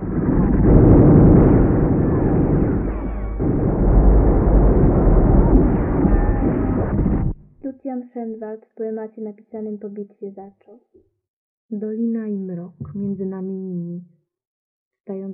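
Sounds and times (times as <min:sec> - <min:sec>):
artillery cannonade: 0:00.0 - 0:07.4
speech: 0:08.3 - 0:11.1, 0:11.7 - 0:14.2, 0:15.1 - 0:15.3.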